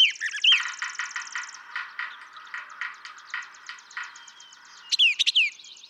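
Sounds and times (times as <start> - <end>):
male brown thrasher long song sequence: 0.2 - 5.6.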